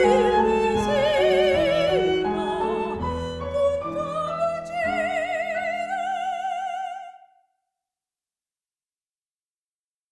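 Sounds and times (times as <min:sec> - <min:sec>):
soprano singing: 0:00.0 - 0:07.4.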